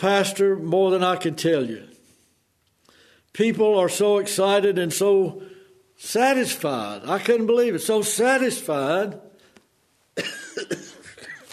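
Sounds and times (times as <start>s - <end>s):
speech: 0.0s - 1.9s, 3.4s - 9.3s, 10.2s - 10.9s
dry coughing from a pastor's dried-out throat: 10.2s - 11.5s
raspy throat-clearing: 10.2s - 11.5s.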